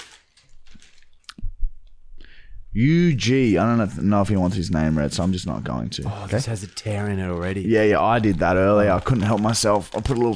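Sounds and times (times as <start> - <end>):
gift package wrapping crinkling and rustling: 0.0 - 1.3, 4.4 - 10.3
speech: 2.8 - 10.3.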